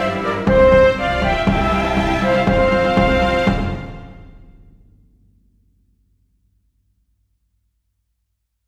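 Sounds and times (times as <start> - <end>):
flutes playing a march: 0.0 - 4.5
strings playing a march: 0.0 - 4.6
drums playing a march: 0.0 - 5.0.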